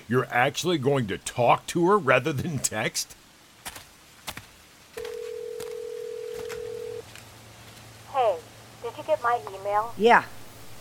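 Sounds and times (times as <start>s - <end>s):
speech: 0.1s - 3.2s, 9.7s - 10.4s
phone ringing tone: 5.0s - 7.0s.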